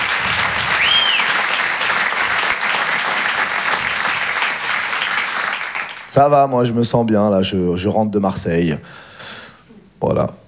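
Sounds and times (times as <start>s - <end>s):
audience applause: 0.0s - 6.2s
speech: 6.1s - 9.1s, 10.0s - 10.3s.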